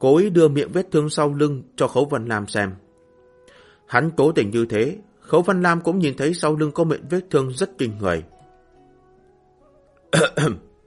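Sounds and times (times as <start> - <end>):
speech: 0.0 - 2.8, 3.9 - 8.3, 10.1 - 10.7
single dry cough: 10.1 - 10.7.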